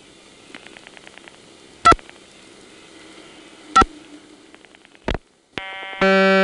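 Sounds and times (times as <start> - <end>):
steady tone from a telephone register sender: 1.7 - 6.4
rapid pulse trains of outpulsed digits: 1.8 - 5.4.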